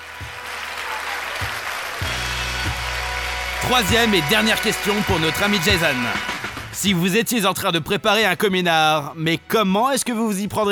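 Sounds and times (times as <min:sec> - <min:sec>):
crowd applause: 0:00.0 - 0:06.8
speech: 0:03.7 - 0:10.6.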